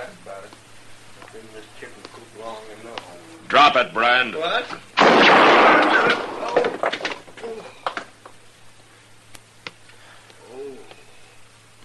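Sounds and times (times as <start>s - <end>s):
speech: 1.4s - 6.7s
loud harsh gunshot: 5.0s - 6.9s
soft coo: 10.4s - 11.1s.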